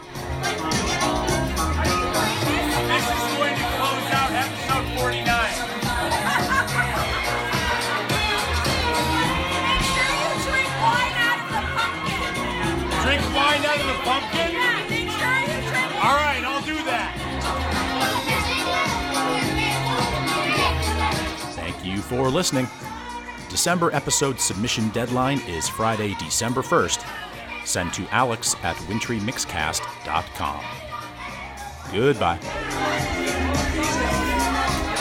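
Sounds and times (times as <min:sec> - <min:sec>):
Halloween party crowd chatter: 0:00.0 - 0:34.9
people laughing: 0:05.9 - 0:08.5
speech: 0:22.0 - 0:22.9, 0:23.6 - 0:30.9, 0:31.9 - 0:33.3.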